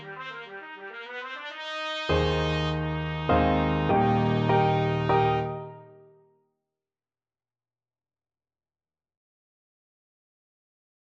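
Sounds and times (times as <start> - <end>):
trumpet: 0.0 - 6.1.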